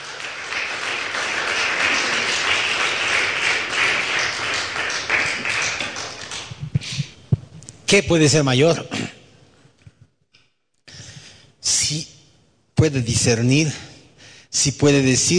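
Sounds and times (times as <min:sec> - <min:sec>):
audience applause: 0:00.0 - 0:06.7
speech: 0:07.9 - 0:09.0, 0:12.8 - 0:13.9, 0:14.6 - 0:15.3.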